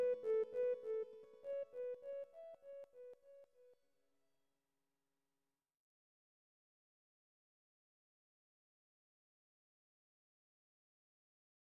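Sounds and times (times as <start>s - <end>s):
guitar: 0.0s - 3.2s.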